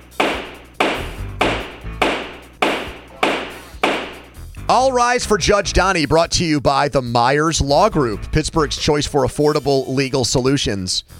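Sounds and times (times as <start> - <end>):
gavel pounding: 0.0 - 4.4
speech: 4.7 - 11.1.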